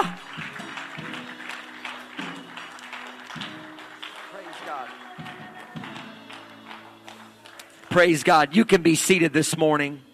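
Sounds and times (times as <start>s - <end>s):
audience clapping hands: 0.0s - 9.3s
speech: 7.9s - 10.1s.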